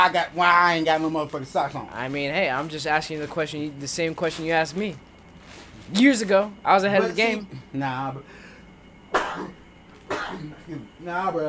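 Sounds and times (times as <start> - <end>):
speech: 0.0 - 5.1, 5.9 - 8.4, 9.1 - 11.4
sneeze: 9.1 - 10.6.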